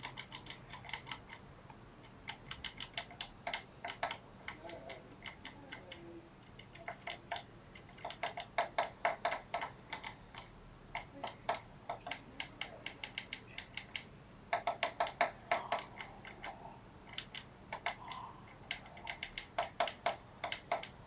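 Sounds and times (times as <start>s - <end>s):
Eurasian blue tit thin whistle and clicking notes: 0.0s - 5.9s, 6.8s - 10.5s, 12.0s - 21.0s.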